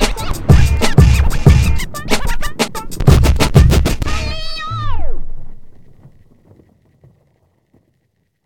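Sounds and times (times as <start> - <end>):
bass rhythm: 0.0 - 5.4.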